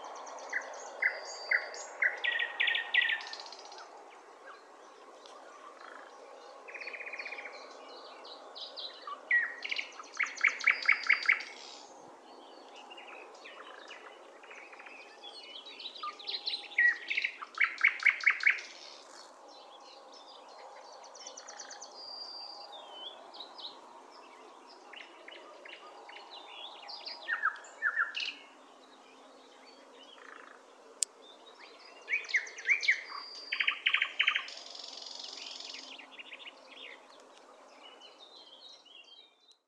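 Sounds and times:
Luscinia luscinia nightingale: 0.0 - 39.6.

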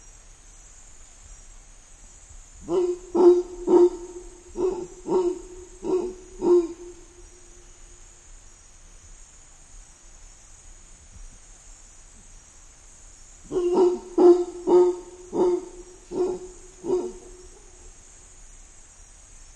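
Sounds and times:
mantled howler monkey: 2.6 - 7.7, 13.5 - 18.0.

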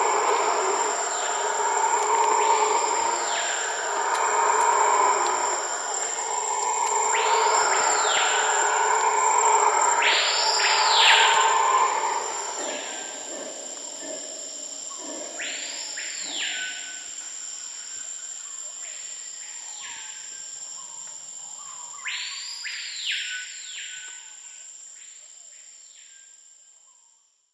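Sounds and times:
Guianan red howler Alouatta macconnelli: 0.0 - 17.2.

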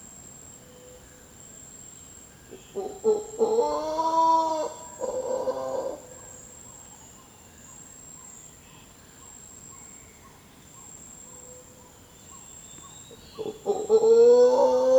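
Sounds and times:
mantled howler Alouatta palliata howling: 2.8 - 6.2, 13.4 - 14.9.

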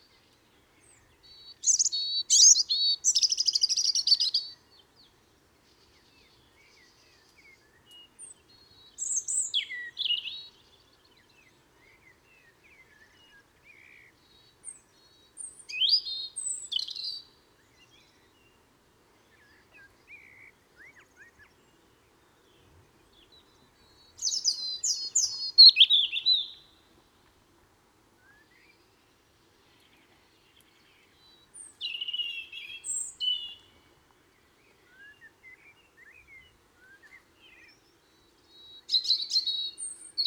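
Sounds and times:
European robin Erithacus rubecula singing: 0.8 - 4.8, 5.9 - 10.9, 14.3 - 18.6, 22.4 - 26.8, 29.7 - 40.2.

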